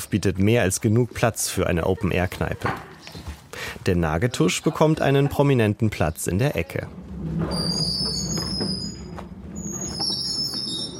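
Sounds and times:
speech: 0:00.0 - 0:03.2, 0:03.9 - 0:07.8
squeaking supports during setup: 0:06.7 - 0:10.9
squeaking side flap during setup: 0:07.3 - 0:10.9.

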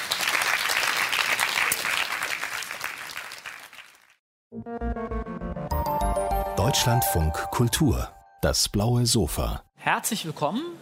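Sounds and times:
audience applause: 0:00.0 - 0:04.2
musical jingle: 0:04.6 - 0:08.7
speech: 0:06.6 - 0:10.7.

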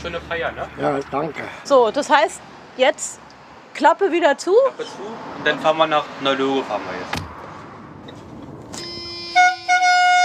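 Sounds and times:
speech: 0:00.0 - 0:03.2, 0:03.8 - 0:07.2
bakery van horn honking: 0:08.8 - 0:10.2.

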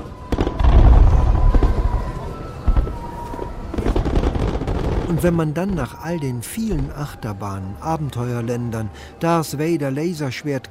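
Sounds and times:
nightly fireworks at the castle: 0:00.0 - 0:06.0
speech: 0:05.2 - 0:10.6.

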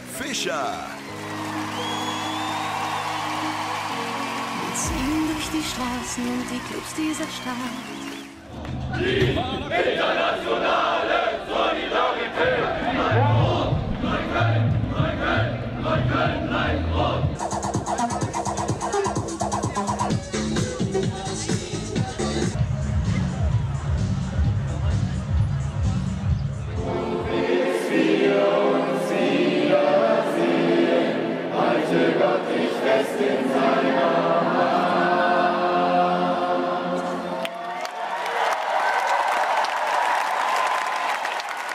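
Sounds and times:
crowd cheering, bawling and chanting: 0:00.0 - 0:41.7
speech: 0:00.2 - 0:01.4, 0:04.8 - 0:08.2, 0:08.9 - 0:11.0
clapping: 0:00.4 - 0:08.4, 0:37.4 - 0:41.7
crowd singing: 0:07.8 - 0:17.4, 0:26.7 - 0:37.4.

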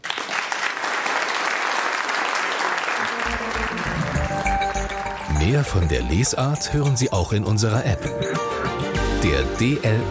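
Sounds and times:
audience applause in a theater: 0:00.0 - 0:06.6
speech: 0:05.5 - 0:10.0.

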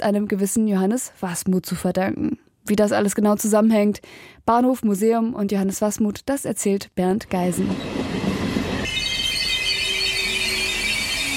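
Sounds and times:
speech: 0:00.0 - 0:08.1
regional train rumbling to a stop at station: 0:07.2 - 0:11.3.

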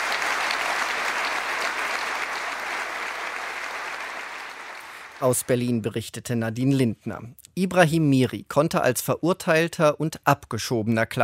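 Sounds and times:
sustained applause from a large audience: 0:00.0 - 0:05.5
speech: 0:05.2 - 0:11.2.

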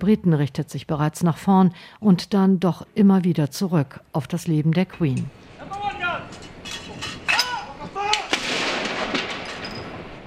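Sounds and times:
speech: 0:00.0 - 0:06.3
ceremonial cannon fire for a gun salute: 0:08.3 - 0:10.2.

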